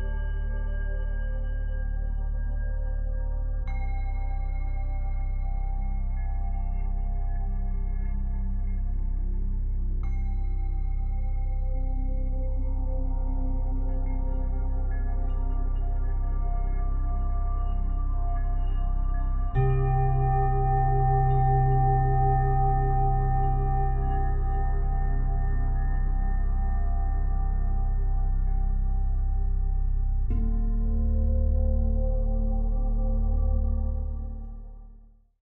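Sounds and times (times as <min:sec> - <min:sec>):
relaxing 3D meditation music: 0:00.0 - 0:35.4.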